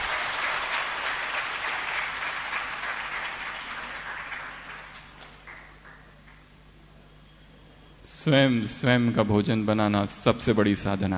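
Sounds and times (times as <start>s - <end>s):
audience clapping: 0.0s - 6.6s
speech: 8.2s - 11.1s.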